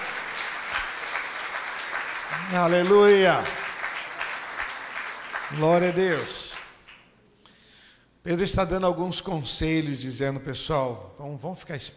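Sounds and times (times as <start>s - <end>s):
audience applause: 0.0s - 7.0s
speech: 2.5s - 3.6s, 5.5s - 6.4s, 8.2s - 11.9s.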